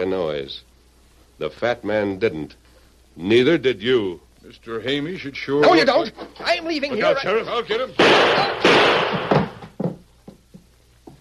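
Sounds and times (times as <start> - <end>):
speech: 0.0 - 0.7, 1.4 - 2.6, 3.2 - 9.4
gunshot in a radio drama: 8.0 - 9.6
faint thuds: 8.0 - 11.1.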